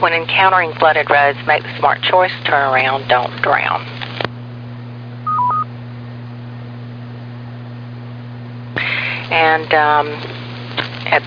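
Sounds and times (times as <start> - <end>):
speech: 0.0 - 3.9, 9.3 - 10.4
steady low electrical hum: 0.0 - 11.2
emergency alert radio tones: 5.3 - 5.7.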